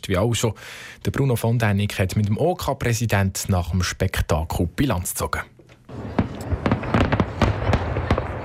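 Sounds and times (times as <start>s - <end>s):
speech: 0.0s - 5.5s
fireworks exploding: 5.9s - 8.4s.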